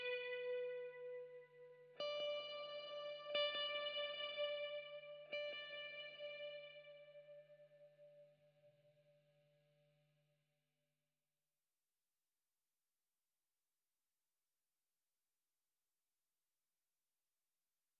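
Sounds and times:
main guitar: 0:00.0 - 0:10.0.

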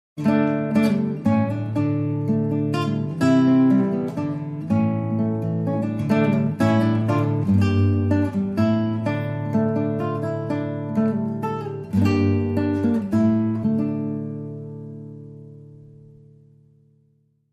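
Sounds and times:
solo guitar: 0:00.2 - 0:17.5.

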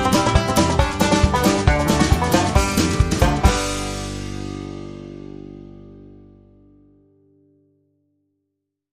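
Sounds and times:
banjo: 0:00.0 - 0:06.5.

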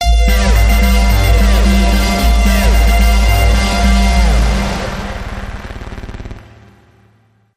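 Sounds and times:
jump dub stinger: 0:00.0 - 0:07.4.

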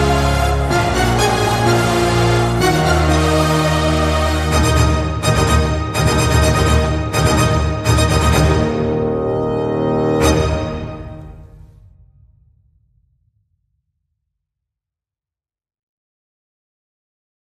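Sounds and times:
orchestra: 0:00.0 - 0:11.8.

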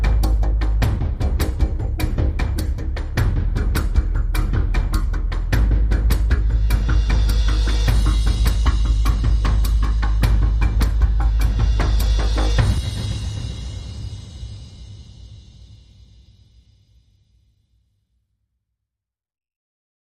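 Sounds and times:
bass: 0:00.0 - 0:16.0
drums: 0:00.0 - 0:16.6.

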